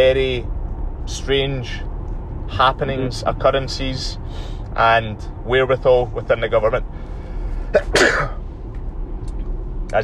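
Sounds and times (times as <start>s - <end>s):
speech: 0.0s - 1.9s, 2.5s - 7.0s, 7.7s - 8.4s
person sneezing: 7.7s - 8.4s.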